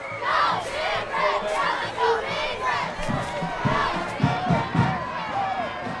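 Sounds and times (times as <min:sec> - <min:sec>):
football game crowd cheering loudly: 0:00.0 - 0:05.9.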